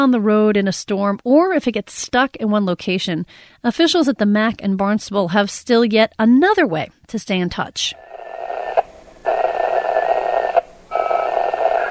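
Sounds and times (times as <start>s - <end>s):
speech: 0.0s - 8.1s
shortwave ham radio data tone: 7.9s - 11.9s.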